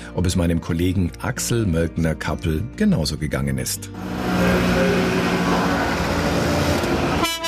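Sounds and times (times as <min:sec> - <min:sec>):
speech: 0:00.2 - 0:04.6
Piaggio Ape three-wheelers rattling: 0:04.0 - 0:07.2
Piaggio Ape three-wheelers honking: 0:04.0 - 0:07.4.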